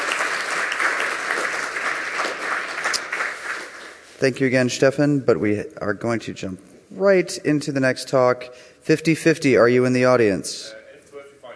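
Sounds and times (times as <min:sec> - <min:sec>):
audience applause: 0:00.0 - 0:04.0
speech: 0:04.2 - 0:10.8.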